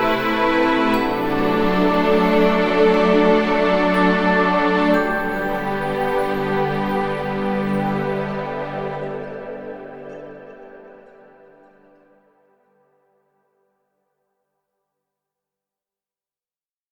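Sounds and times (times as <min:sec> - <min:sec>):
heavenly ambient music: 0:00.0 - 0:13.4.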